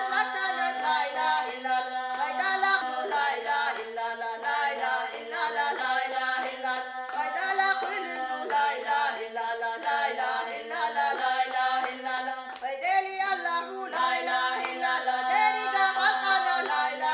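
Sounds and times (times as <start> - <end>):
Chechen polyphonic singing: 0.0 - 17.1.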